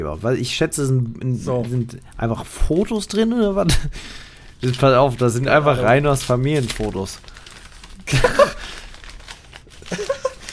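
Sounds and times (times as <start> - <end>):
speech: 0.0 - 7.3, 8.1 - 8.5
gift wrapping paper being torn open: 4.3 - 10.5
laughter: 8.1 - 8.6, 9.8 - 10.5.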